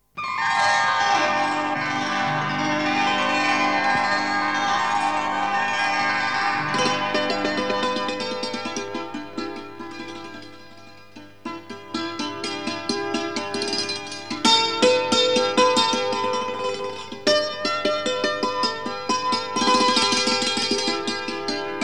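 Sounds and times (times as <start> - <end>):
instrumental theme music: 0.2 - 21.8.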